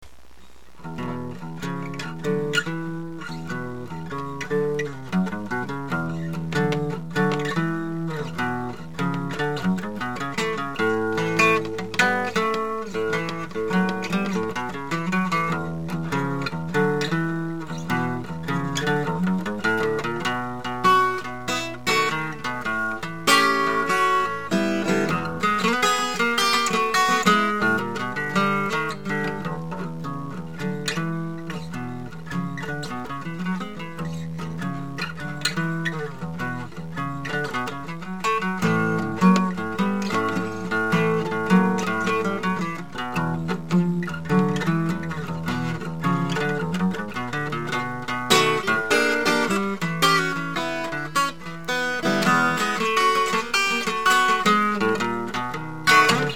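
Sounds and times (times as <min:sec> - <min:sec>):
blues music: 0:00.0 - 0:56.3.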